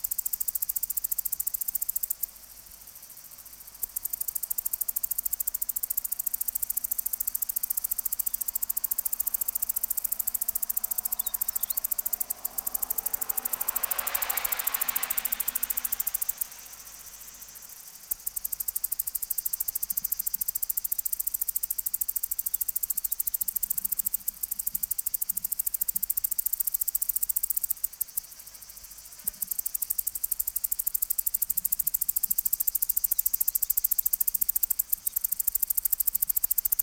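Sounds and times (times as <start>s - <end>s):
cicada song: 0.0s - 36.8s
faint background hiss: 0.0s - 36.8s.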